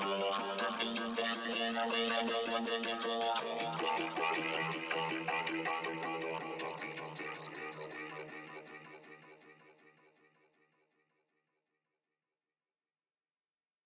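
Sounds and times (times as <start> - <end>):
vocals: 0.0 - 10.4.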